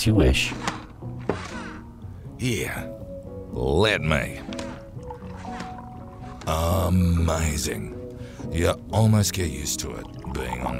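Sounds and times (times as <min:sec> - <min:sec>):
speech: 0:00.0 - 0:01.5, 0:02.4 - 0:04.7, 0:06.5 - 0:10.7
drink poured from a bottle: 0:04.6 - 0:07.3, 0:09.9 - 0:10.7.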